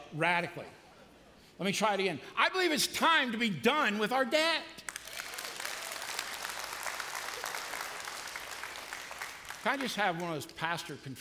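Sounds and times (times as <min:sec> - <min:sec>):
speech: 0:00.1 - 0:00.8, 0:01.6 - 0:04.9, 0:09.6 - 0:11.2
half-hearted audience applause: 0:04.9 - 0:10.6.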